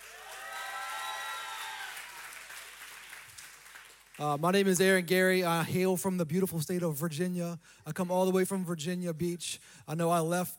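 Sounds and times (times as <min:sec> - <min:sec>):
crowd cheering and whooping: 0:00.0 - 0:02.5
audience applause: 0:00.0 - 0:04.4
speech: 0:04.2 - 0:10.5.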